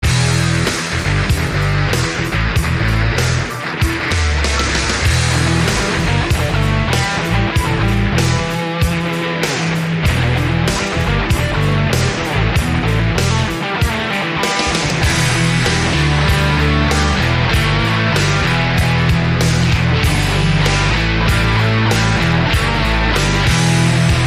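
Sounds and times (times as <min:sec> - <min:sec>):
rock music: 0:00.0 - 0:24.2.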